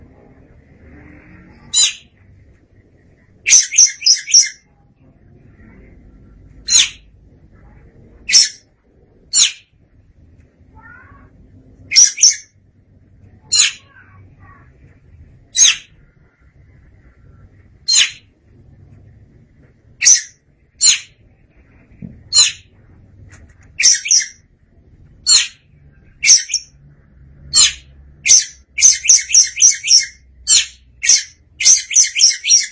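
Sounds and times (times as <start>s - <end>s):
low background hum: 0.0s - 32.7s
Oriental magpie-robin scratchy calls: 1.7s - 2.1s, 3.5s - 4.7s, 6.7s - 7.0s, 8.3s - 8.6s, 11.9s - 12.5s, 15.6s - 16.0s, 17.9s - 18.2s, 20.0s - 21.1s, 23.8s - 24.4s, 26.2s - 26.7s, 27.5s - 32.7s.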